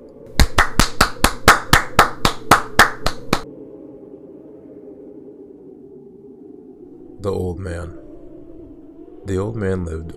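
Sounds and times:
hand claps: 0:00.3 - 0:03.4
speech: 0:07.2 - 0:08.0, 0:09.2 - 0:10.1.

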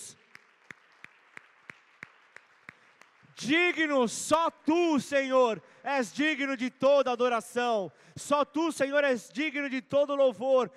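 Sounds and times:
audience clapping in rhythm: 0:00.0 - 0:04.2
speech: 0:03.4 - 0:10.7.

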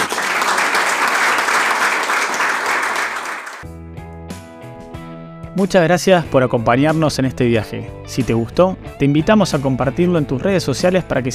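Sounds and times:
applause: 0:00.0 - 0:03.7
speech: 0:05.6 - 0:11.3.

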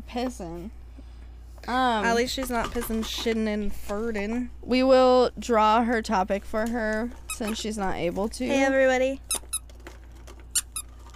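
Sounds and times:
speech: 0:00.1 - 0:00.8, 0:01.6 - 0:09.3
squeaky dog toy squeezed: 0:07.2 - 0:07.6, 0:09.2 - 0:09.7, 0:10.5 - 0:11.0.

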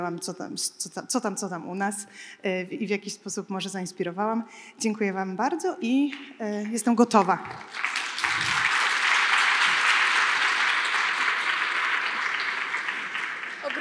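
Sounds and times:
speech: 0:00.0 - 0:08.0
audience applause: 0:07.6 - 0:13.7.

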